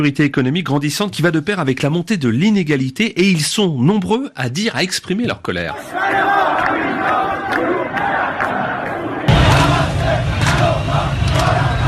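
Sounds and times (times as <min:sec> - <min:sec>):
speech: 0:00.0 - 0:08.1
protest crowd in Iran chanting slogans: 0:05.8 - 0:11.8.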